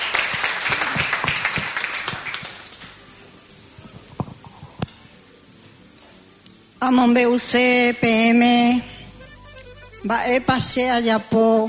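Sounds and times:
loud applause: 0:00.0 - 0:03.0
speech: 0:06.8 - 0:08.9, 0:10.0 - 0:11.6.

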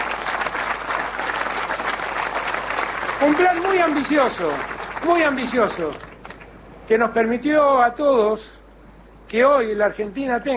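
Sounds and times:
audience applause: 0:00.0 - 0:06.4
speech: 0:03.2 - 0:06.1, 0:06.9 - 0:08.6, 0:09.3 - 0:10.5.

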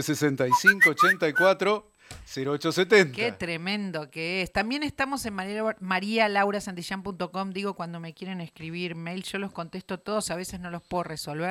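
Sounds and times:
speech: 0:00.0 - 0:11.4
little bird whistle sound effect: 0:00.5 - 0:01.5.

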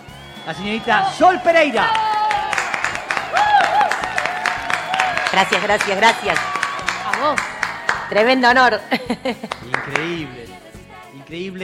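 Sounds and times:
audience applause: 0:00.0 - 0:10.4
speech: 0:00.4 - 0:02.0, 0:05.3 - 0:06.5, 0:07.2 - 0:07.5, 0:08.1 - 0:11.6
laughter: 0:02.5 - 0:10.5.

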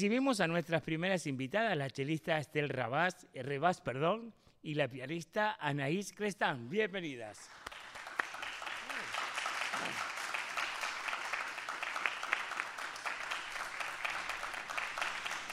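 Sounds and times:
speech: 0:00.0 - 0:07.8
audience applause for performers: 0:07.5 - 0:15.5.

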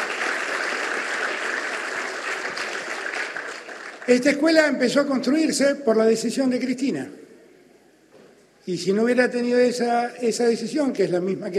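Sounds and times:
crowd applauding: 0:00.0 - 0:04.5
speech: 0:04.1 - 0:07.2, 0:08.7 - 0:11.5.

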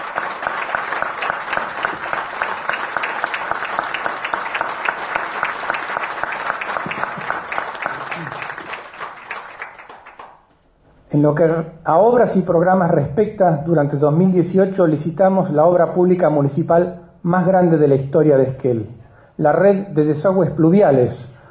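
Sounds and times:
audience applause: 0:00.0 - 0:10.4
speech: 0:11.2 - 0:21.4.

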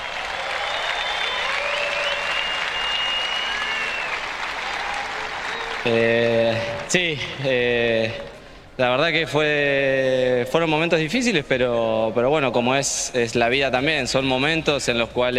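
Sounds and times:
audience applause: 0:00.0 - 0:07.0
speech: 0:05.8 - 0:15.3.

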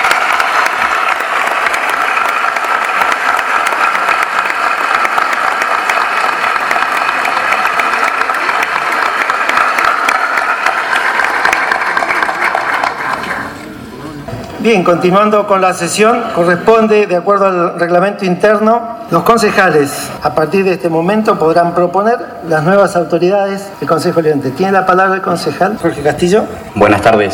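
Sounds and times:
audience applause for newly sworn councillors: 0:00.0 - 0:13.6
speech: 0:14.6 - 0:27.3.

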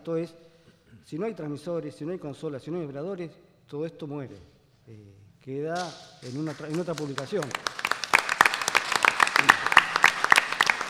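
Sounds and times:
speech: 0:00.0 - 0:07.8
audience applause: 0:06.2 - 0:10.8.

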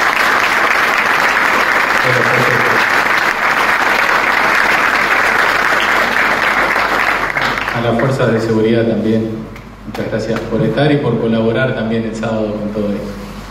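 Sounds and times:
audience applause: 0:00.0 - 0:08.6
speech: 0:07.8 - 0:13.2.

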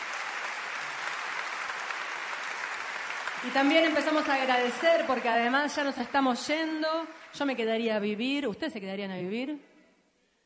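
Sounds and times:
very loud audience applause: 0:00.0 - 0:07.6
speech: 0:03.4 - 0:09.7.

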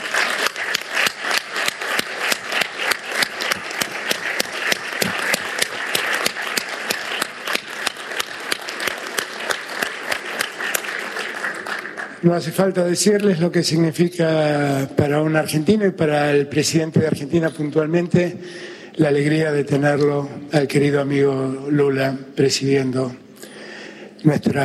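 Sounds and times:
sustained applause from a large audience: 0:00.0 - 0:12.7
speech: 0:12.2 - 0:23.2, 0:24.2 - 0:24.6.

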